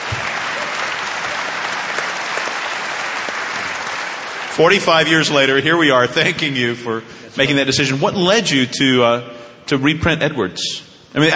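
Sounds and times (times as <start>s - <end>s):
audience applause: 0.0s - 5.6s
speech: 4.6s - 11.3s.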